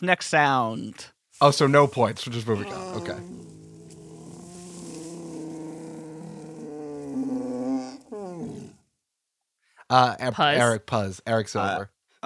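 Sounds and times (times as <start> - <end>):
speech: 0.0 - 3.5, 9.9 - 12.2
bear yawning: 2.4 - 8.8.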